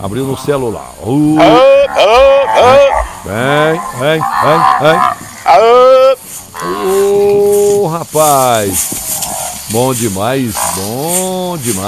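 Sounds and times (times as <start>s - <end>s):
speech: 0.0s - 6.0s, 6.6s - 9.0s, 9.7s - 11.8s
cattle from a herd mooing: 0.6s - 7.8s, 10.5s - 11.4s.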